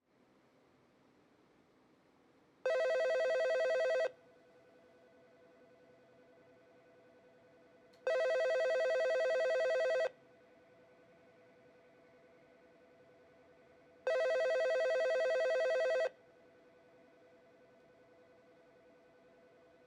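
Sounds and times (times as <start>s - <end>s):
phone ringing: 2.7s - 4.1s, 8.1s - 10.1s, 14.1s - 16.1s.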